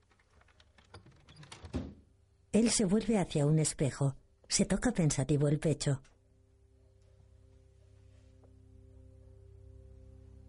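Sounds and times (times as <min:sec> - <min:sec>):
door swinging shut with thud: 0:01.0 - 0:02.0
speech: 0:02.6 - 0:06.1.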